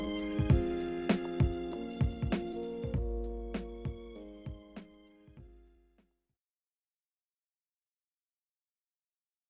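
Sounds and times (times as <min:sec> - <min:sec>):
instrumental music: 0:00.0 - 0:06.1.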